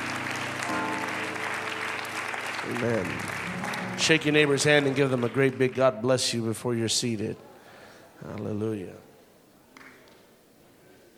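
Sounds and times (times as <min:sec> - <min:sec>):
held instrumental tones: 0:00.0 - 0:04.8
church congregation clapping in praise during a service: 0:00.0 - 0:06.6
speech: 0:02.7 - 0:03.4, 0:04.0 - 0:07.5, 0:08.2 - 0:09.1.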